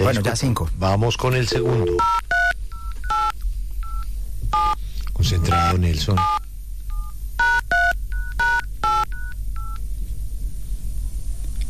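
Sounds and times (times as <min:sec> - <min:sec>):
speech: 0:00.0 - 0:02.4, 0:05.2 - 0:06.4
low steady hum: 0:00.0 - 0:11.6
touch-tone phone number being dialed: 0:01.5 - 0:04.0, 0:04.6 - 0:04.8, 0:05.4 - 0:09.8.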